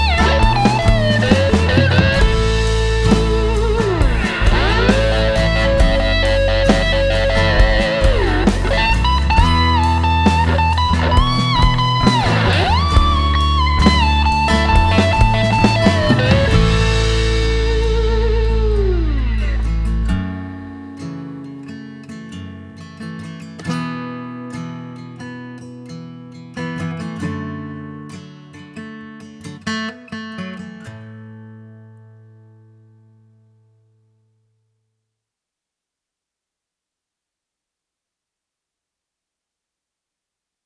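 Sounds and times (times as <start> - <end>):
slide guitar solo: 0.0 - 23.1.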